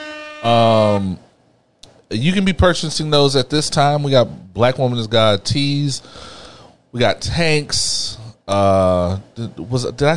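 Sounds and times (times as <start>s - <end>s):
air horns sound effect: 0.0s - 1.2s
speech: 0.4s - 1.2s, 2.1s - 10.1s.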